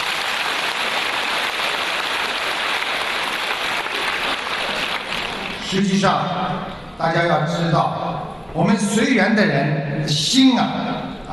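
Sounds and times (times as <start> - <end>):
audience applause: 0.0 - 5.7
speech: 5.7 - 11.3.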